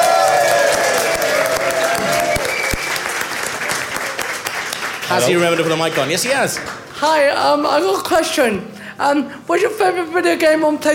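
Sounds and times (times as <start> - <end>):
audience applause: 0.0 - 6.9
speech: 5.1 - 10.9.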